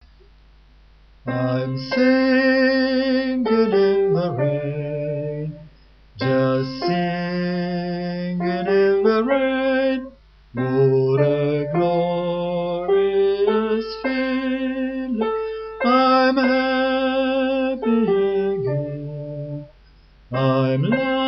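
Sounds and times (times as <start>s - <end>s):
soprano singing: 1.3s - 19.7s, 20.3s - 21.2s.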